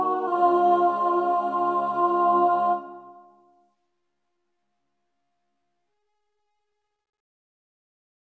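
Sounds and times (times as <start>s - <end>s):
soprano singing: 0.0s - 3.4s.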